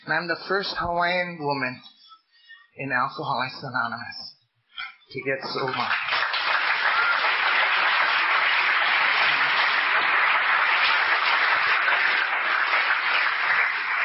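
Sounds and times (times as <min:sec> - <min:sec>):
speech: 0:00.1 - 0:01.9, 0:02.8 - 0:04.4, 0:05.1 - 0:06.1
audience applause: 0:05.4 - 0:14.0.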